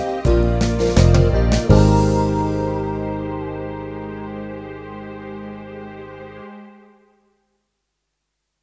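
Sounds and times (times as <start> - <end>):
soft beat: 0.0 - 3.4.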